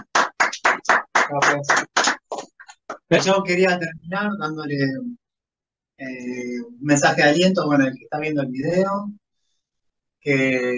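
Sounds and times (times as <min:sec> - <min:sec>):
small group clapping: 0:00.0 - 0:03.4
speech: 0:01.3 - 0:02.0, 0:03.1 - 0:05.2, 0:06.0 - 0:09.2, 0:10.2 - 0:10.7.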